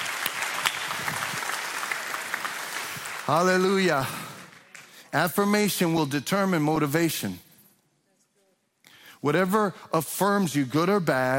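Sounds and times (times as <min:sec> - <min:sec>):
audience clapping: 0:00.0 - 0:05.4
speech: 0:03.3 - 0:04.2, 0:05.1 - 0:07.4, 0:09.2 - 0:11.3.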